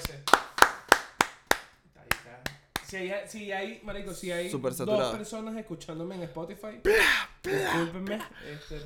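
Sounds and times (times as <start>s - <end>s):
applause: 0.0s - 3.0s
speech: 2.9s - 8.8s.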